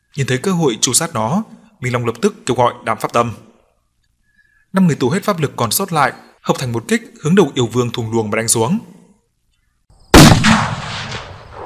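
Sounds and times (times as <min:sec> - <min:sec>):
speech: 0:00.2 - 0:03.4, 0:04.7 - 0:09.0
loud explosion: 0:10.2 - 0:11.6.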